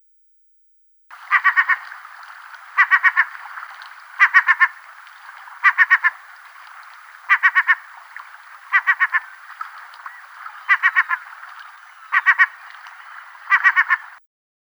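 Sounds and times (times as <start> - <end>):
herring gull harsh clipped calls: 1.1 - 14.2.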